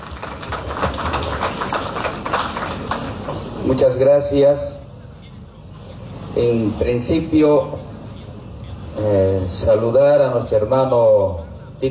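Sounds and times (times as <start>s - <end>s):
audience applause: 0.0s - 3.6s
speech: 3.8s - 4.8s, 6.4s - 7.9s, 9.0s - 11.9s.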